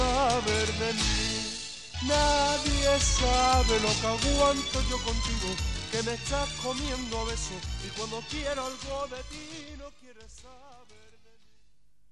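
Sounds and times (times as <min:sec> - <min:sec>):
jingle: 0:00.0 - 0:09.4.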